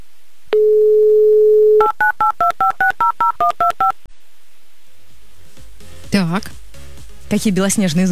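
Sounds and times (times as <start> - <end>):
telephone dial tone: 0.5 - 1.9
dual-tone keypad beeps dialing a phone number: 0.6 - 4.0
speech: 7.3 - 8.1.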